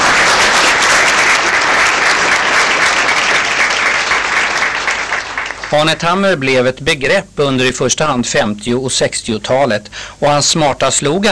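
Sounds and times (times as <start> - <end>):
crowd clapping: 0.0 - 6.3
speech: 5.7 - 11.3.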